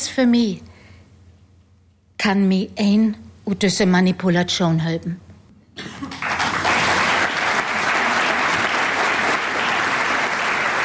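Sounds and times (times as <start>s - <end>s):
speech: 0.2s - 0.7s, 2.2s - 5.2s
audience applause: 6.0s - 10.8s.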